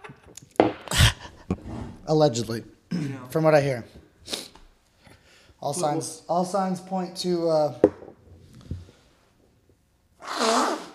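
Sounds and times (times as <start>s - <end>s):
speech: 1.5s - 4.4s, 5.6s - 7.9s
person blowing nose: 4.2s - 4.6s, 10.2s - 10.9s.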